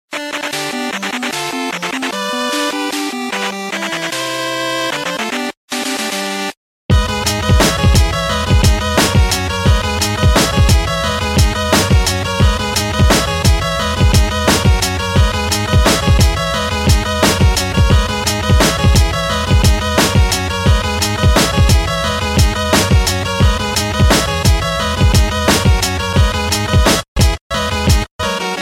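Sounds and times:
8-bit remix music: 0.1s - 28.6s.

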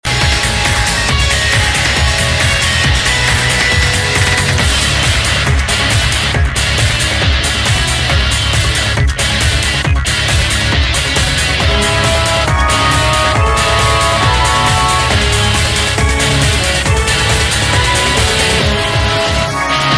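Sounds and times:
instrumental music: 0.0s - 19.9s.

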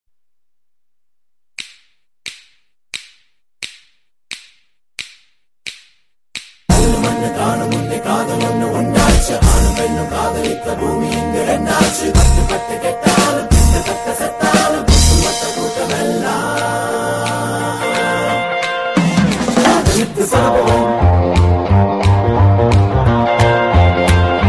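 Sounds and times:
music: 6.7s - 24.4s.

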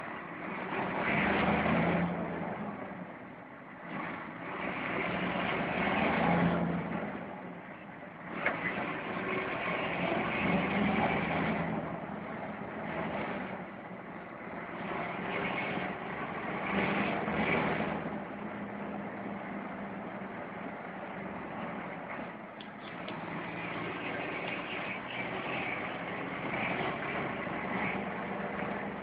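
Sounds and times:
Scania R420 truck engine: 0.0s - 29.0s.

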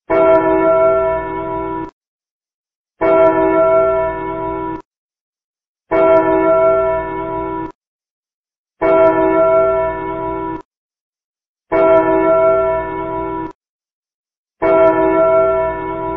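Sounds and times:
clock tower: 0.1s - 1.9s, 3.0s - 4.8s, 5.9s - 7.8s, 8.8s - 10.6s, 11.7s - 13.6s, 14.6s - 16.1s.

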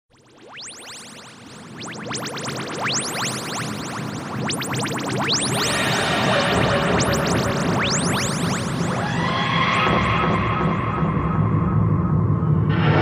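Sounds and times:
Tardis landing sound: 0.2s - 12.9s.

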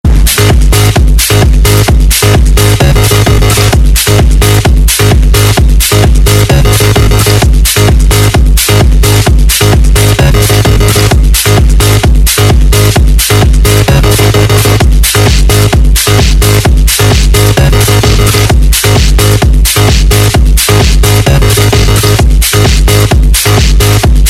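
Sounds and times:
electronic music: 0.0s - 24.2s.

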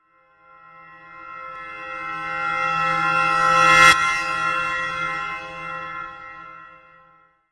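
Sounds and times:
reversed bell: 1.0s - 6.2s.

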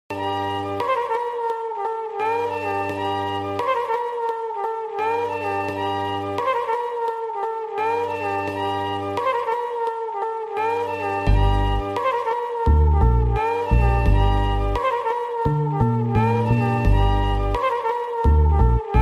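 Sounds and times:
simple trumpet melody: 0.1s - 19.0s.

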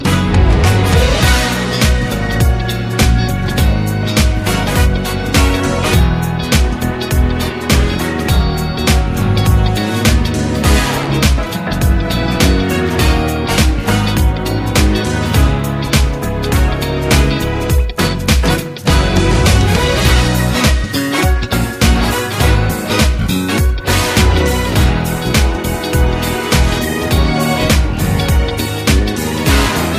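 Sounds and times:
campfire instrumental music: 0.0s - 29.9s.

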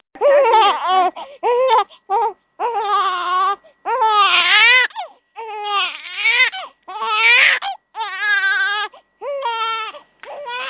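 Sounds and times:
baby crying: 0.2s - 10.6s.

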